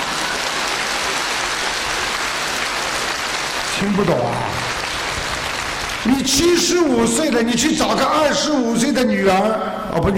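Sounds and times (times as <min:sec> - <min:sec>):
audience applause: 0:00.0 - 0:07.4
speech: 0:03.8 - 0:04.7, 0:06.0 - 0:10.1.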